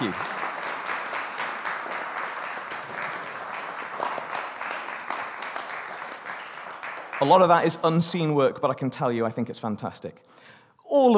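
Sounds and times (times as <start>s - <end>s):
audience applause: 0.0s - 7.8s
speech: 7.2s - 11.1s.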